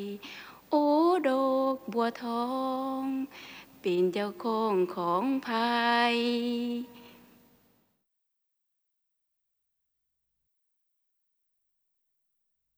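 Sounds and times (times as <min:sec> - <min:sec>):
Laotian chant: 0:00.8 - 0:07.4.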